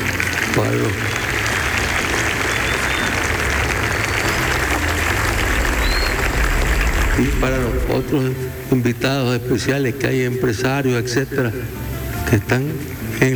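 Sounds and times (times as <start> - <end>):
audience applause: 0.0 - 8.5
speech: 0.6 - 1.2, 7.2 - 13.3.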